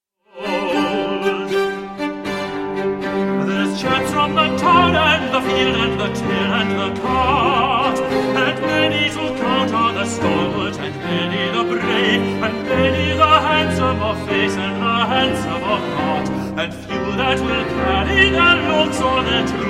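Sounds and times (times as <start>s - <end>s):
piano: 0.3s - 19.6s
tenor singing: 0.3s - 19.6s
string quartet: 0.4s - 19.6s.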